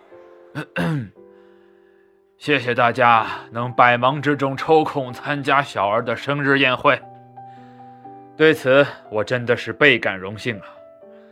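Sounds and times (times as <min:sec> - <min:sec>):
faint steady music: 0:00.0 - 0:11.2
person performing an affected throat clearing: 0:00.6 - 0:01.2
speech: 0:00.6 - 0:01.2, 0:02.4 - 0:07.1, 0:08.4 - 0:10.8.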